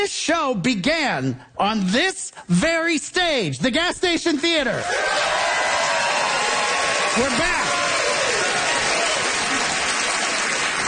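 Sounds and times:
speech: 0.0s - 5.5s, 7.2s - 7.8s
live show audience applause at the Gas Station Theatre in Winnipeg: 4.8s - 10.8s.

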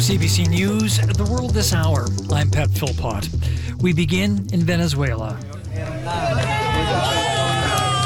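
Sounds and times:
speech: 0.1s - 5.5s
crowd cheering as a man is pulled alive from earthquake rubble in Venezuela: 5.5s - 8.0s.

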